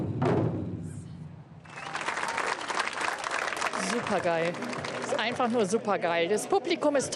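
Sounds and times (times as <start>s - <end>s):
large taiko drums being struck: 0.0s - 1.5s
crowd applause and cheering: 1.6s - 6.6s
speech: 4.1s - 7.1s.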